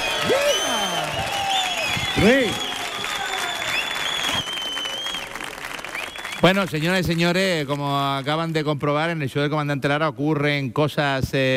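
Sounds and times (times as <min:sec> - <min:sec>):
audience applause at a live comedy show at Auditorio Cartuja: 0:00.0 - 0:08.4
speech: 0:00.2 - 0:00.5, 0:02.2 - 0:02.6, 0:06.4 - 0:11.5.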